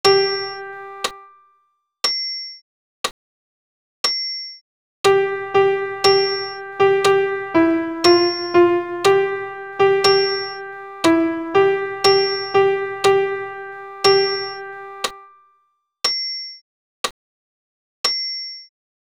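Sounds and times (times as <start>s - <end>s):
solo piano piece: 0.0s - 1.1s, 5.1s - 15.2s.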